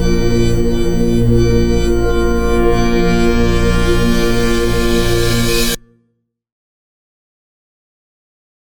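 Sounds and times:
eurobeat cover music: 0:00.0 - 0:05.8.

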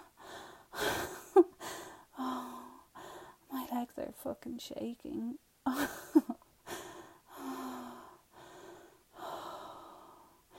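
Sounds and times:
heavy breathing: 0:00.0 - 0:03.4, 0:06.6 - 0:10.5
speech: 0:04.2 - 0:06.0.

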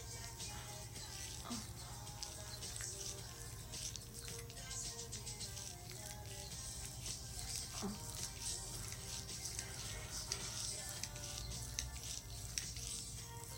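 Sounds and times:
wet noises: 0:00.0 - 0:13.5
sleepy woman whimpering: 0:01.3 - 0:02.1, 0:07.8 - 0:08.2.

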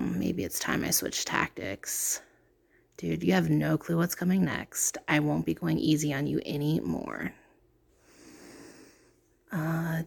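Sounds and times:
speech: 0:00.3 - 0:02.3, 0:03.0 - 0:07.4, 0:09.5 - 0:10.0
heavy breathing into a microphone: 0:07.9 - 0:09.3.

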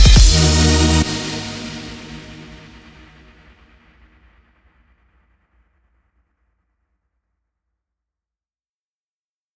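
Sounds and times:
electronic dance music: 0:00.0 - 0:03.4.

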